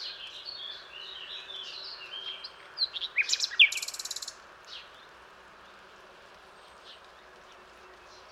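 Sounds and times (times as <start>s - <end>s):
common nightingale song: 0.0s - 4.4s.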